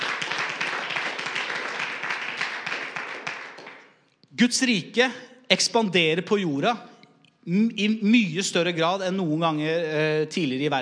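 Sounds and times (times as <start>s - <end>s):
crowd applauding: 0.0s - 4.0s
speech: 4.4s - 10.8s.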